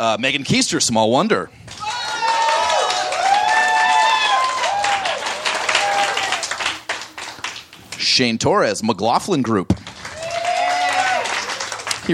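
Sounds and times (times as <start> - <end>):
speech: 0.0 - 1.9, 8.1 - 9.8
audience clapping at a live comedy show: 1.6 - 8.1, 9.7 - 12.1
people whooping and cheering: 1.7 - 7.1, 10.0 - 12.0.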